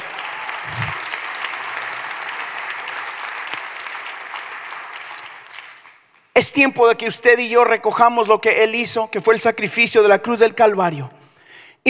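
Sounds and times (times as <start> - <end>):
audience applause: 0.0 - 6.2
speech: 6.4 - 11.2.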